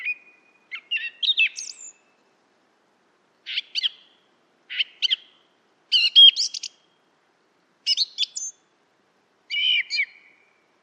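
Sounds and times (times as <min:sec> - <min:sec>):
song thrush singing: 0:00.0 - 0:02.3, 0:03.4 - 0:07.1, 0:07.8 - 0:08.7, 0:09.5 - 0:10.8.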